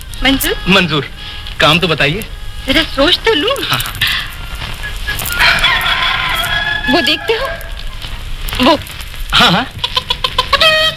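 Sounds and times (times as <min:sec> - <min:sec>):
steady low hum: 0:00.0 - 0:10.9
speech: 0:00.2 - 0:04.2, 0:06.9 - 0:07.7, 0:08.6 - 0:09.9
hen clucking: 0:04.2 - 0:08.1, 0:09.7 - 0:10.9.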